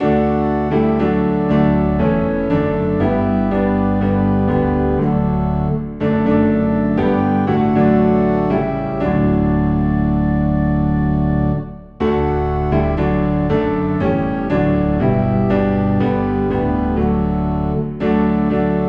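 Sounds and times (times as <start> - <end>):
low piano and organ in D: 0.0 - 18.8.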